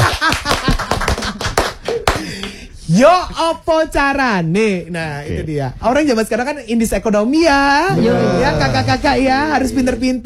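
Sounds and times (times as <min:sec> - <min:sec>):
hands clapping: 0:00.0 - 0:02.6
speech: 0:03.0 - 0:10.2.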